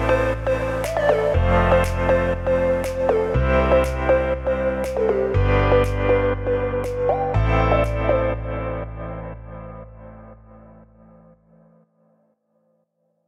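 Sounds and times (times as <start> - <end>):
summer uplifting pop music: 0.0 - 10.2.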